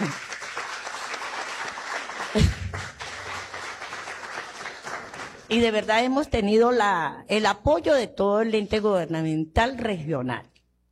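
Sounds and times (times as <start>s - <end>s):
audience applause: 0.0s - 5.5s
speech: 2.3s - 2.6s, 5.5s - 10.5s.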